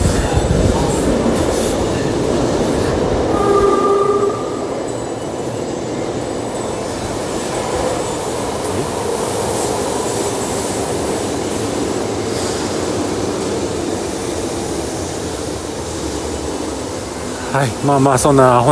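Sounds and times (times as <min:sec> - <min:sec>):
subway train at a station on the opposite track: 0:00.0 - 0:18.6
subway train wheel squeal: 0:01.6 - 0:08.2
speech: 0:17.6 - 0:18.6.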